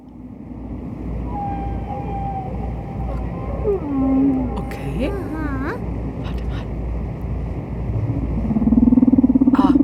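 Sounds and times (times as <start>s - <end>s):
whale vocalization, deep creaking and rumbling: 1.2s - 4.8s, 8.0s - 9.8s
speech: 3.7s - 6.4s.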